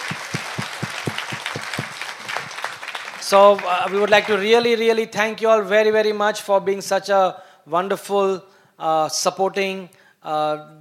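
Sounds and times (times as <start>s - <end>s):
audience applause: 0.0s - 4.5s
speech: 3.3s - 10.7s.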